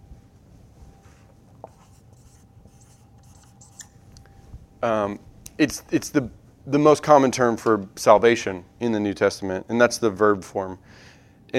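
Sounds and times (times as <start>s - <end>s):
pen writing by hand: 1.6s - 3.9s
speech: 4.8s - 11.5s.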